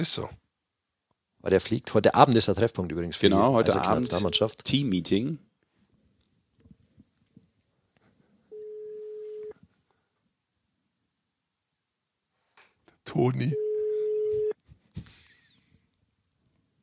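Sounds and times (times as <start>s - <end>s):
speech: 0.0s - 0.4s, 1.4s - 5.5s, 13.1s - 13.7s
telephone ringing tone on outgoing call: 8.5s - 9.6s, 13.6s - 14.6s.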